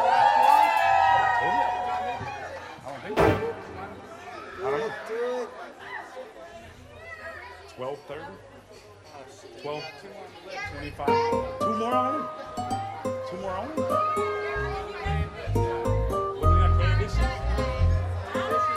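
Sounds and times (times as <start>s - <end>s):
women in a late-night show audience cheering and whooping: 0.0s - 2.5s
crowd chatter: 0.0s - 18.7s
sharp thud: 3.2s - 4.4s.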